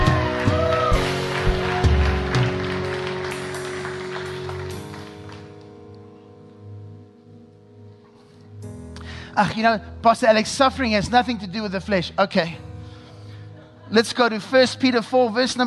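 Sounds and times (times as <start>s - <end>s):
audience clapping: 0.0s - 5.8s
speech: 9.4s - 12.7s, 13.9s - 15.6s.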